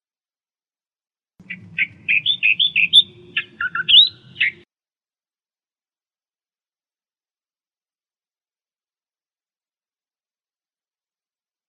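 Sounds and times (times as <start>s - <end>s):
Australian reed warbler song: 1.4s - 4.6s
faint low rumble: 1.4s - 4.6s.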